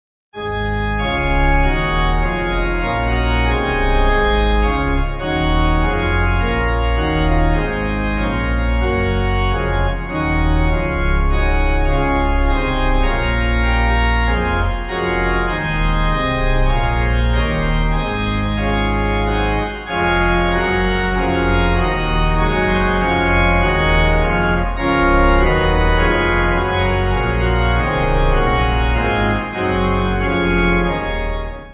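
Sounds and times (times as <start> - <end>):
church pipe organ backing music: 0.4 - 31.7.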